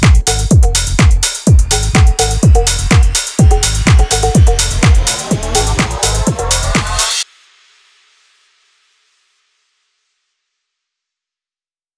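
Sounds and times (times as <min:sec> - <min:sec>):
tech house music: 0:00.0 - 0:07.2.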